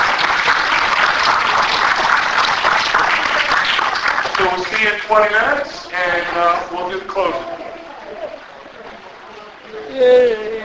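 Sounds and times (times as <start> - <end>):
audience clapping: 0.0 - 7.4
speech: 4.5 - 7.5, 10.0 - 10.6.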